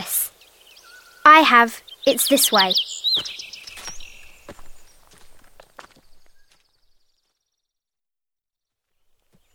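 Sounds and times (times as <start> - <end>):
speech: 1.4 - 3.4
footsteps of people walking: 3.2 - 6.8.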